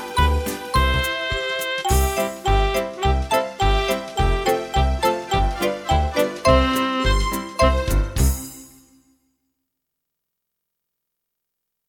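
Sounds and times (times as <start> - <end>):
instrumental music: 0.0 - 9.4.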